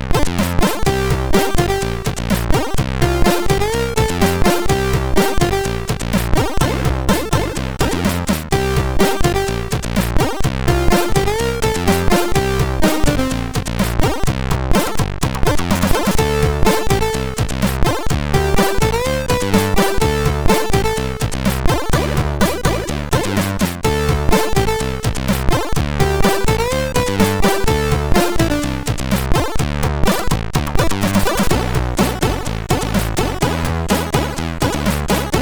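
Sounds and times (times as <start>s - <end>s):
loader music on MOS6581R3 SID chip: 0.1s - 35.3s.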